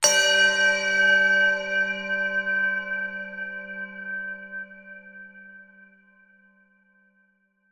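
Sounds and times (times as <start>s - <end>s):
bell strike: 0.0s - 5.7s.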